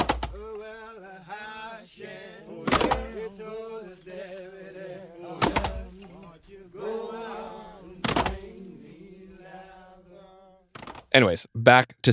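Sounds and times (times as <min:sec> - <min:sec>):
axes chopping logs: 0:00.0 - 0:00.4, 0:02.6 - 0:03.2, 0:05.4 - 0:05.8
group of Black men in prison singing work song: 0:00.0 - 0:10.6
speech: 0:11.1 - 0:12.1.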